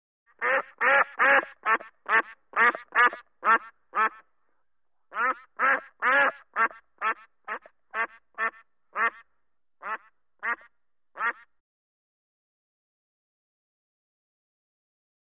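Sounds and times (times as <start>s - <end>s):
duck quacking: 0.3s - 4.3s, 5.1s - 11.6s.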